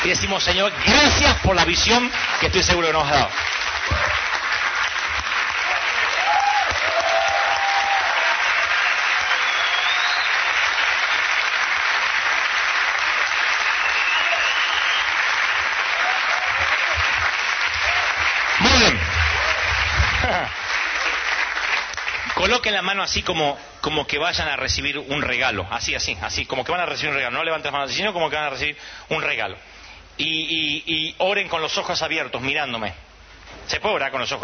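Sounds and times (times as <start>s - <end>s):
speech: 0.0s - 4.2s, 22.6s - 33.0s, 33.7s - 34.4s
audience applause: 0.0s - 22.6s
faint cheers and whoops: 5.6s - 10.5s, 13.8s - 15.2s, 15.9s - 17.1s, 17.7s - 18.3s, 19.3s - 21.2s.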